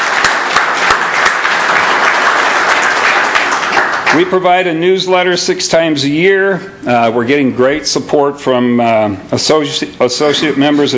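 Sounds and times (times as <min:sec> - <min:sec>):
audience clapping: 0:00.0 - 0:04.6
speech: 0:04.2 - 0:10.9.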